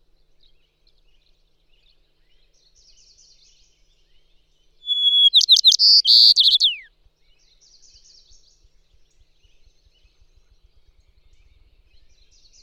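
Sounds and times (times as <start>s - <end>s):
White-crowned Sparrow calling: 4.9s - 6.9s.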